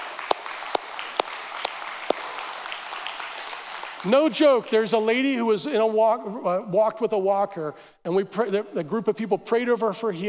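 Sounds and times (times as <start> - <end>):
audience applause: 0.0 - 4.1
speech: 4.0 - 10.2.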